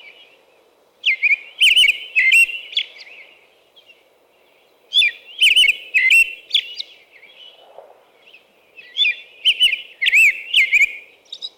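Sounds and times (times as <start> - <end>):
songbird whistling, probably American robin: 1.0 - 2.9, 4.9 - 6.9, 8.8 - 11.5.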